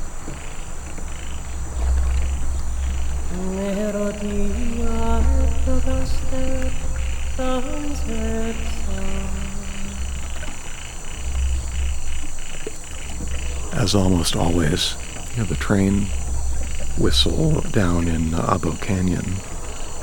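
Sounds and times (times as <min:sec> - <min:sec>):
trees squeaking and creaking in the wind: 0:00.0 - 0:20.0
speech: 0:04.2 - 0:04.7, 0:05.7 - 0:09.4, 0:13.8 - 0:16.2, 0:17.0 - 0:19.5.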